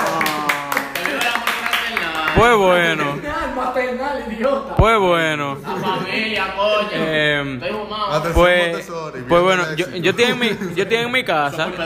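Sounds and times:
rhythmic hand clapping: 0.0 - 2.8
speech: 2.4 - 11.8
laughter: 5.5 - 7.1, 9.7 - 11.8.

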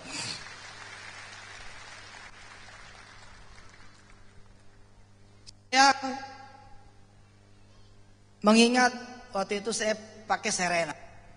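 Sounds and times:
audience applause: 0.0 - 4.4
speech: 5.7 - 6.3, 8.4 - 11.0.

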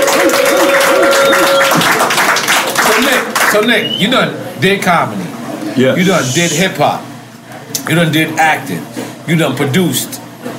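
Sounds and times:
high held shout: 0.0 - 2.0
crowd cheering and whooping: 0.0 - 2.2
crowd applause: 0.0 - 3.7
speech: 3.5 - 7.1, 7.8 - 10.2.

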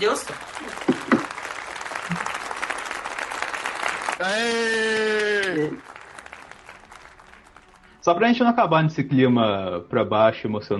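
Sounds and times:
speech: 0.0 - 0.6, 4.2 - 4.8, 8.0 - 10.7
audience applause: 0.0 - 8.4.

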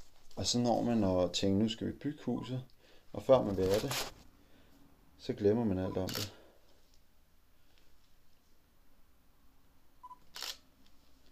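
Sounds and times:
faint steady hiss: 0.0 - 11.2
speech: 0.4 - 4.2, 5.2 - 6.4
camera shutter click: 6.0 - 6.4, 10.3 - 10.6.

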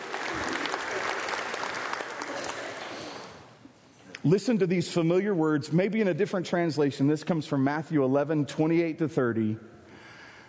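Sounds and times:
crowd clapping: 0.0 - 3.4
speech: 4.2 - 9.7.

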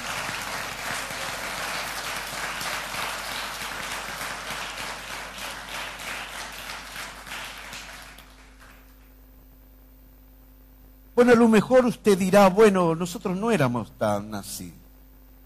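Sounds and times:
audience applauding: 0.0 - 9.1
speech: 11.2 - 14.8.

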